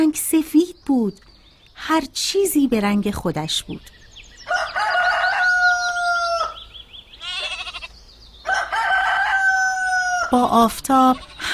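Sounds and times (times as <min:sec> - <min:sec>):
speech: 0:00.0 - 0:04.0, 0:10.3 - 0:11.5
rooster crowing: 0:04.4 - 0:06.7, 0:08.4 - 0:10.4.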